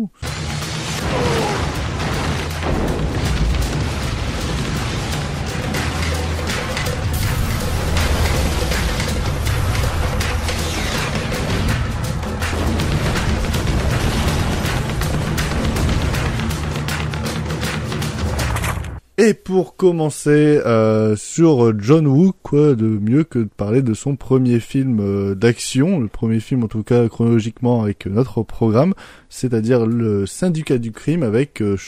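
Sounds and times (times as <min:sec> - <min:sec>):
podcast intro theme music: 0:00.2 - 0:18.7
booming explosive bursts and whooshing action-style effects: 0:00.2 - 0:19.0
speech: 0:19.2 - 0:31.8.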